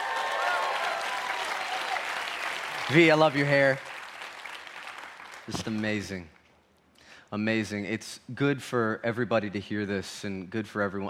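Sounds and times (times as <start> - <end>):
crowd applause welcoming St. Paul people: 0.0 - 5.8
speech: 2.9 - 3.9, 5.5 - 6.4, 7.3 - 11.0.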